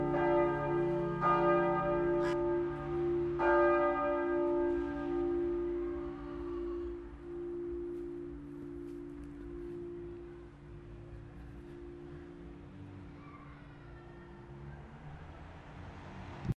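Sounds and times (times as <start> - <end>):
multi-voice church bell peal tuned d1 f1 a1 c2 d2: 0.0 - 13.6.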